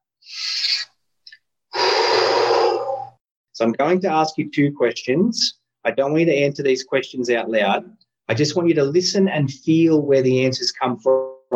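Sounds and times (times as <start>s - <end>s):
deep breath in and out: 1.7s - 3.2s
speech: 3.6s - 11.5s.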